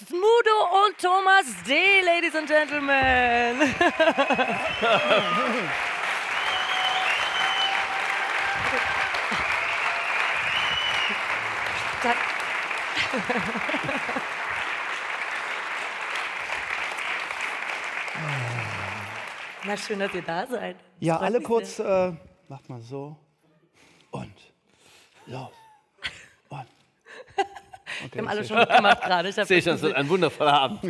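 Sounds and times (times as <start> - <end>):
audience applause: 0.4 - 20.6
speech: 0.9 - 5.9, 13.1 - 14.2, 19.6 - 23.2, 25.3 - 25.6, 28.1 - 30.8
laughter: 2.7 - 6.9, 7.7 - 15.1, 27.1 - 30.8.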